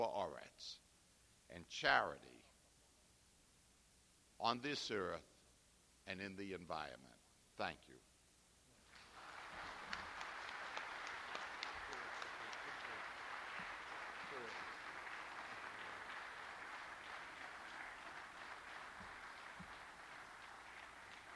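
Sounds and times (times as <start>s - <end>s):
speech: 0.0s - 0.9s, 1.5s - 2.4s, 4.4s - 5.3s, 6.1s - 8.1s
audience applause: 8.9s - 21.3s.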